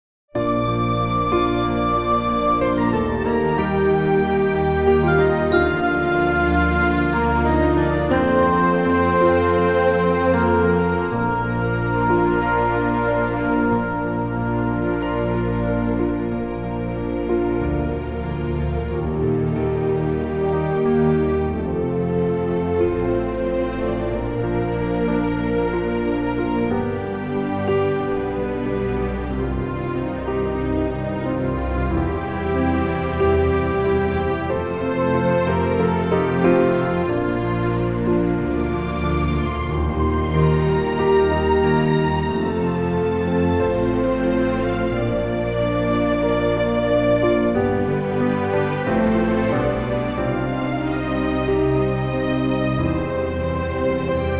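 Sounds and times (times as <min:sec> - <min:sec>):
orchestral music in B flat: 0:00.3 - 0:54.3.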